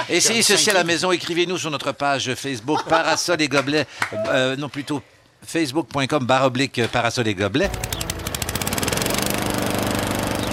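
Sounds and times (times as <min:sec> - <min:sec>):
speech: 0:00.1 - 0:08.0
laughter: 0:02.7 - 0:03.4
lawn mower engine running: 0:07.7 - 0:10.5.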